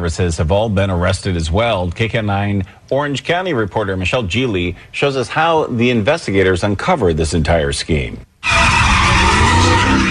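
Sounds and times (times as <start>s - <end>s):
speech: 0.0s - 8.6s
car tires skidding and screeching: 8.4s - 10.1s.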